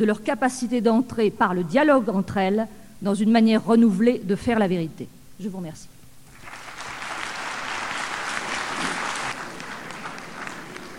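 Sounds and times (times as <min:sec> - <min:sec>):
speech: 0:00.0 - 0:05.9
applause: 0:06.3 - 0:10.9.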